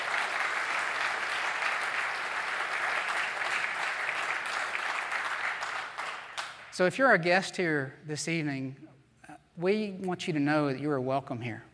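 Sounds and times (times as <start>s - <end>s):
applause for a decorating team at a church Christmas evening gathering: 0.0s - 6.7s
speech: 6.8s - 8.8s, 9.6s - 11.7s.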